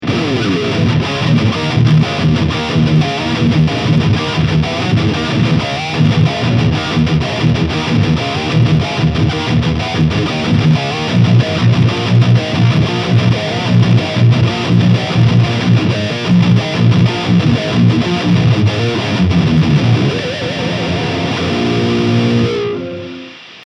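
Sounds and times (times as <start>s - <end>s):
Ibanez XPTB720 high-gain guitar: 0.0s - 23.6s.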